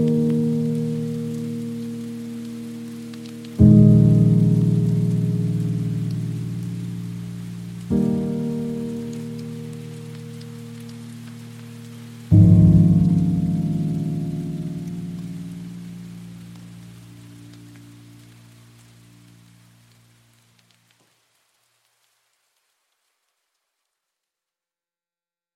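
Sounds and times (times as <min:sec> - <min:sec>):
ambient music: 0:00.0 - 0:18.5.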